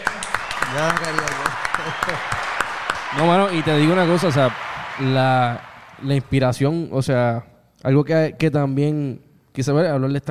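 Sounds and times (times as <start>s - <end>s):
small group clapping: 0.0s - 6.4s
speech: 0.7s - 2.4s, 3.1s - 10.2s.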